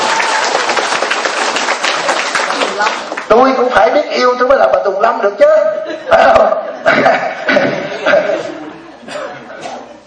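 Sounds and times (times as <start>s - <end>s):
audience applause: 0.0s - 3.3s
speech: 3.3s - 8.5s
laughter: 5.8s - 9.8s.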